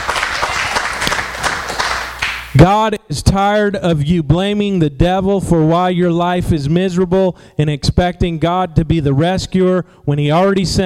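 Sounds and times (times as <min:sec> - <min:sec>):
congregation clapping during a church service: 0:00.0 - 0:02.6
speech: 0:02.6 - 0:10.8.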